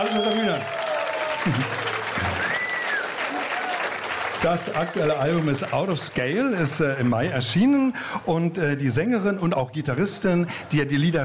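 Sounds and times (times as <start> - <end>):
speech: 0.0 - 0.8, 4.4 - 11.2
audience applause: 0.0 - 7.3.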